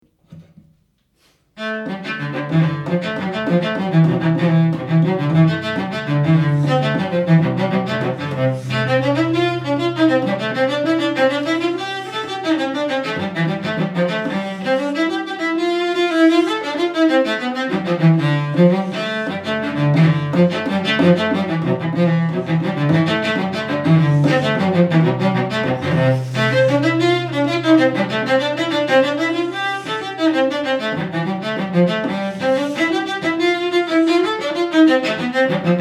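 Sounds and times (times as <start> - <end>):
cello: 1.5 - 35.7.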